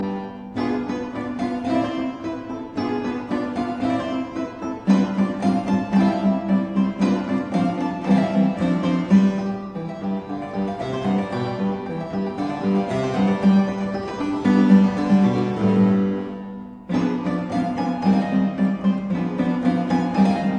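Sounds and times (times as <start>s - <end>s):
sonata in G major for clavichord or fortepiano: 0.0s - 20.5s.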